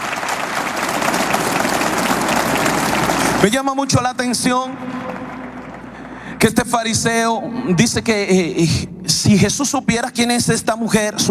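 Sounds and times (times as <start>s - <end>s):
audience applause: 0.0s - 6.3s
speech: 3.4s - 5.3s, 6.4s - 11.2s.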